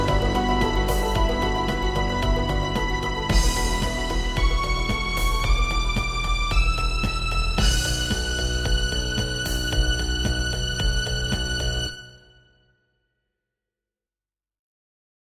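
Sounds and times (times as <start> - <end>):
virtual instrument mandolin: 0.0 - 11.9
virtual instrument piano: 0.0 - 12.3
virtual instrument harp: 0.0 - 12.4
virtual instrument strings: 0.0 - 12.6.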